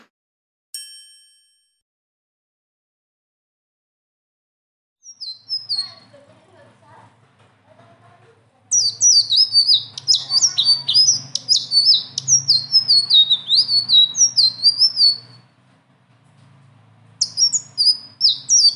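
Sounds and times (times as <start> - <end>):
leafbird singing: 5.1 - 6.1, 8.7 - 15.4, 17.2 - 18.7.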